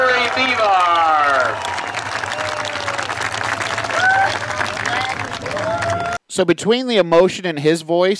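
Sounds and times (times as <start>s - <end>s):
crowd clapping: 0.0s - 6.2s
speech: 6.4s - 8.1s.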